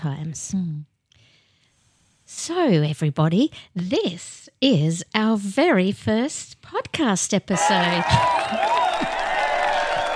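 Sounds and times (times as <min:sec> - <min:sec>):
speech: 0:00.0 - 0:00.9, 0:02.3 - 0:08.8
big crowd cheering: 0:07.5 - 0:10.1
laughter: 0:07.6 - 0:10.1.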